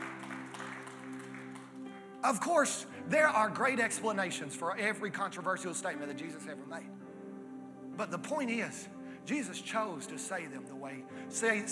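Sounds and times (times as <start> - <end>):
hand clapping: 0.0 - 1.9
speech: 2.2 - 7.0, 8.0 - 11.7.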